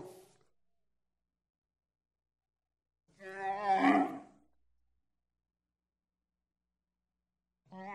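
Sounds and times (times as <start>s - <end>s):
camel grumbling vocalisations: 3.4s - 4.3s.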